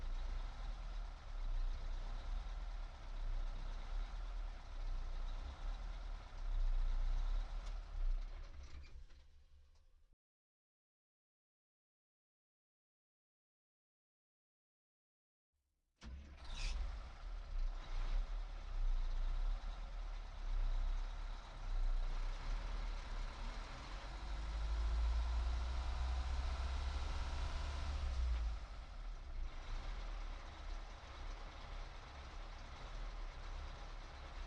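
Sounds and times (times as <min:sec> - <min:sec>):
Peterbilt 359 truck engine at medium drive recorded onboard: 0:00.0 - 0:08.7, 0:16.0 - 0:34.4.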